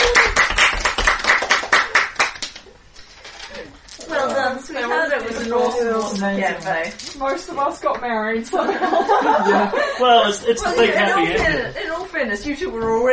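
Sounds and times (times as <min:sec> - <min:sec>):
tabletop role-playing game players clapping: 0:00.0 - 0:02.8
speech: 0:05.4 - 0:13.1
laughter: 0:08.5 - 0:11.7.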